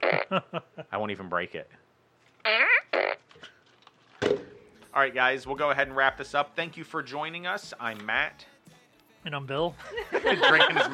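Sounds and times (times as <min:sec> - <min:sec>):
fart: 0:00.0 - 0:00.3, 0:02.4 - 0:03.3
speech: 0:00.3 - 0:02.7, 0:05.0 - 0:08.5, 0:09.2 - 0:10.9
laughter: 0:09.8 - 0:10.9.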